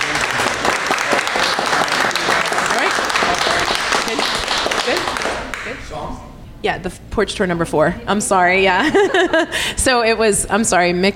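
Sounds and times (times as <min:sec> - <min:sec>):
audience applause: 0:00.0 - 0:05.7
speech: 0:05.9 - 0:11.1
laughter: 0:08.7 - 0:09.8.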